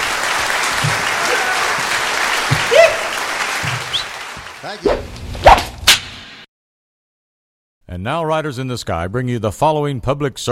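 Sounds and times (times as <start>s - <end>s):
audience clapping: 0.0s - 5.1s
speech: 4.6s - 5.1s, 7.9s - 10.4s.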